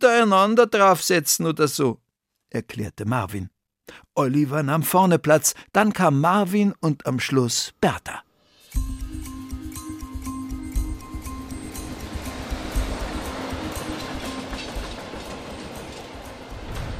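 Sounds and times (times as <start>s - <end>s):
speech: 0.0s - 9.0s
green open mine train rattling into a tunnel in a mountain: 10.8s - 16.9s.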